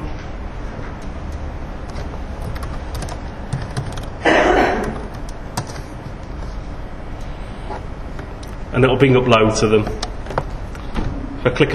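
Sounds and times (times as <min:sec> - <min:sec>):
typing on a computer keyboard: 0:00.8 - 0:08.6
speech: 0:08.8 - 0:10.2, 0:11.4 - 0:11.7.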